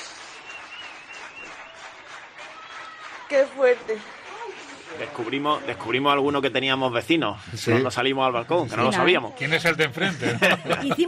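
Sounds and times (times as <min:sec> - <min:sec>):
neighbours applauding from balconies: 0:00.0 - 0:07.0
faint whistle-like tone: 0:00.1 - 0:01.8
speech: 0:03.3 - 0:04.2, 0:04.9 - 0:11.0
laughter: 0:08.6 - 0:11.0.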